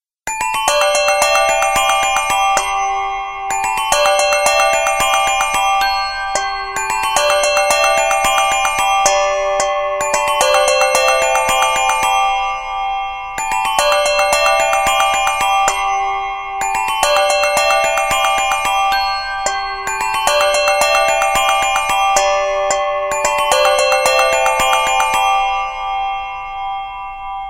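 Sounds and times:
Lenovo A6000 phone tone: 0.3s - 26.1s.

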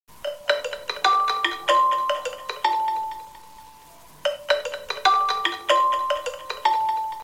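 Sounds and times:
Xiaomi Redmi Mi phone ringtone: 0.2s - 7.2s.

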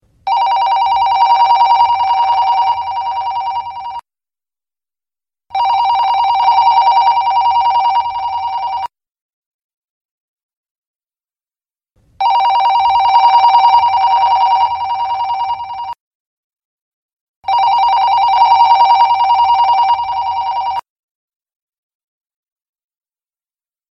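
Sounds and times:
business cell phone ringtone: 0.3s - 4.0s, 5.5s - 8.9s, 12.2s - 16.0s, 17.5s - 20.9s.

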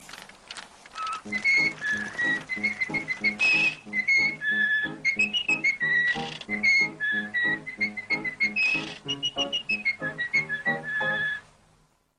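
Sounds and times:
whistling ringtone: 1.0s - 11.5s.

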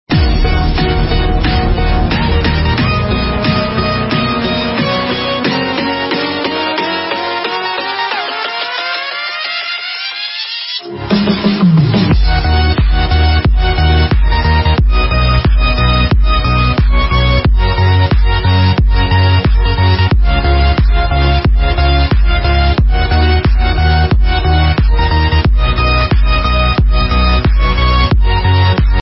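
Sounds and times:
instrumental music: 0.1s - 28.9s.

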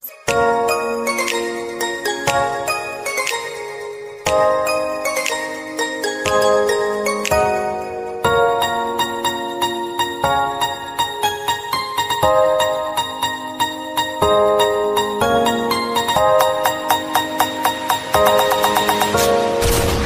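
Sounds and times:
romantic Bollywood music ringtone: 0.0s - 19.8s.

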